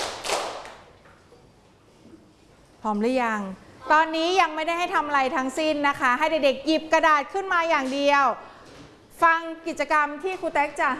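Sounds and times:
hand claps: 0:00.0 - 0:00.9
speech: 0:02.8 - 0:08.5, 0:09.2 - 0:10.9.

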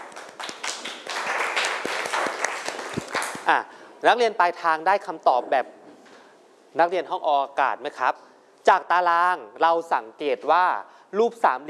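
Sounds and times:
classroom applause: 0:00.0 - 0:03.5
speech: 0:03.5 - 0:05.8, 0:06.8 - 0:11.6.

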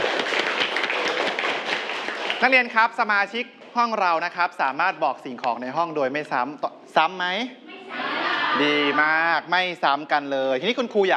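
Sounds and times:
students clapping their hands: 0:00.0 - 0:03.0
speech: 0:02.4 - 0:11.1.

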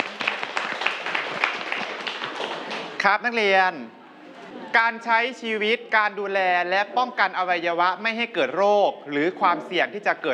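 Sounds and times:
students clapping for a classmate in a school lesson: 0:00.0 - 0:03.0
speech: 0:03.0 - 0:04.0, 0:04.7 - 0:10.3.

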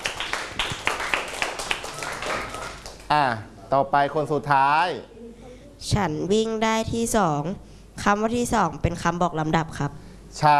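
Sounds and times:
classroom children clapping for a classmate: 0:00.0 - 0:03.1
speech: 0:03.1 - 0:05.1, 0:05.8 - 0:10.5.

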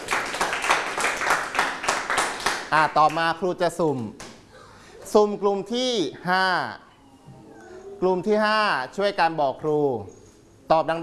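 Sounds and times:
students in a classroom clapping for themselves: 0:00.0 - 0:03.3
speech: 0:02.7 - 0:04.2, 0:05.1 - 0:06.8, 0:08.0 - 0:11.0.

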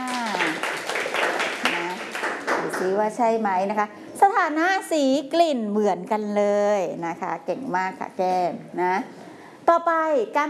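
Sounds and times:
class of pupils applauding a classmate: 0:00.0 - 0:03.0
speech: 0:02.8 - 0:10.4.

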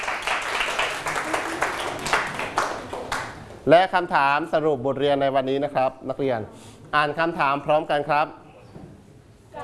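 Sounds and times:
classroom students clapping for a classmate: 0:00.0 - 0:03.5
speech: 0:03.6 - 0:08.4.

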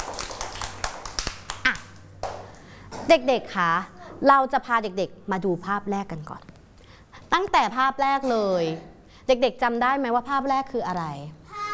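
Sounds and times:
children clapping: 0:00.0 - 0:02.7
speech: 0:03.1 - 0:06.5, 0:07.3 - 0:11.4.

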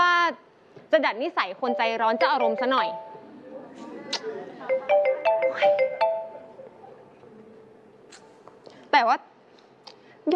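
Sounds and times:
speech: 0:00.9 - 0:03.1, 0:09.0 - 0:09.3
phone ringtone: 0:01.7 - 0:03.3, 0:04.7 - 0:06.6
murmur: 0:02.4 - 0:08.4.

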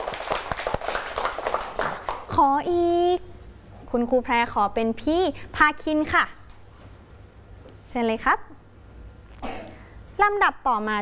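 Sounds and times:
children clapping for a classmate's correct answer in class: 0:00.0 - 0:02.3
speech: 0:02.4 - 0:03.3, 0:03.9 - 0:06.4, 0:07.9 - 0:08.6, 0:10.2 - 0:11.0.

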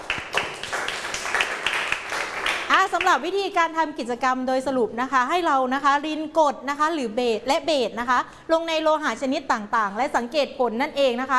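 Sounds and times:
audience clapping: 0:00.0 - 0:03.2
speech: 0:02.9 - 0:11.3.

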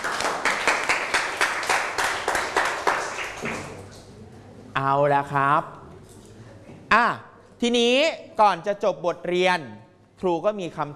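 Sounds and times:
students clapping: 0:00.0 - 0:04.0
speech: 0:04.9 - 0:05.8, 0:06.9 - 0:10.9.

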